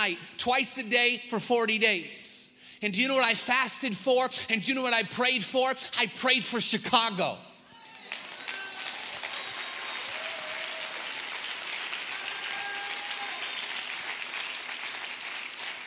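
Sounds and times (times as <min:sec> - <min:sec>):
speech: 0:00.0 - 0:07.5
audience clapping: 0:08.0 - 0:15.8.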